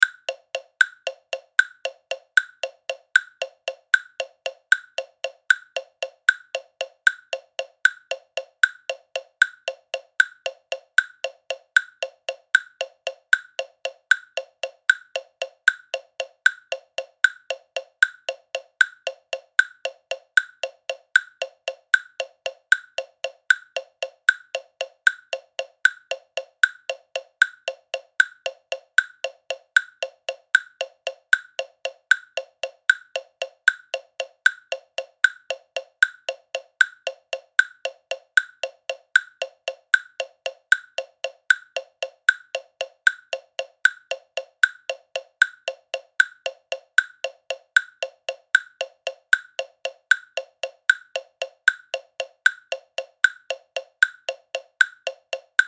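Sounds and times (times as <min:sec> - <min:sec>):
metronome in three-quarter time at 230 bpm: 0:00.0 - 0:55.6.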